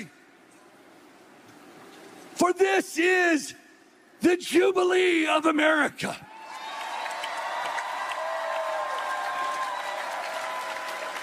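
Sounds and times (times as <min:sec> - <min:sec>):
speech: 0:02.4 - 0:03.6, 0:04.2 - 0:06.3
audience clapping hands: 0:06.5 - 0:11.2.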